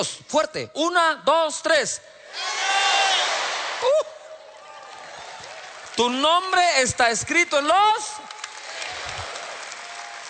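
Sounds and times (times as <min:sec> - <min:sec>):
speech: 0:00.0 - 0:02.9, 0:03.8 - 0:04.1, 0:06.0 - 0:08.4
audience shouting names with hands raised: 0:02.3 - 0:05.7.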